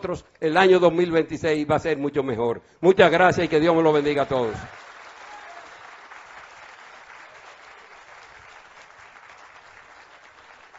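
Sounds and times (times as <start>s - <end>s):
speech: 0.0s - 4.8s
audience applause: 3.5s - 10.7s.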